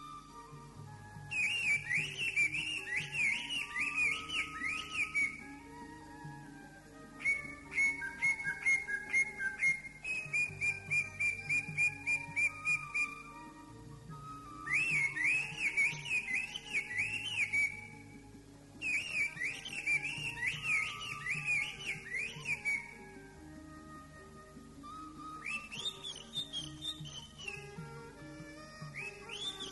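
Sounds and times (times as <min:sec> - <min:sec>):
greater green leafbird song: 0:00.0 - 0:18.2, 0:18.8 - 0:23.3, 0:24.8 - 0:29.7.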